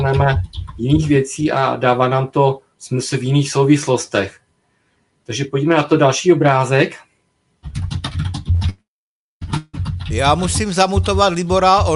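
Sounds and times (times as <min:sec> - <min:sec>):
hard typing on a computer keyboard: 0:00.0 - 0:01.2, 0:07.6 - 0:08.8
speech: 0:00.1 - 0:04.4, 0:05.3 - 0:08.0, 0:10.1 - 0:11.9.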